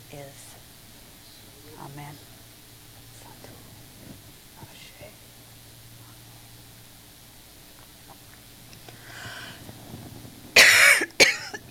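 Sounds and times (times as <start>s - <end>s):
speech: 0.1s - 0.5s, 1.6s - 2.3s
person coughing from a tickle in the throat: 10.6s - 11.6s.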